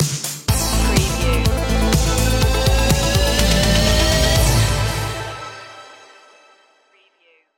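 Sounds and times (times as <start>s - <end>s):
8-bit stinger: 0.5s - 6.6s.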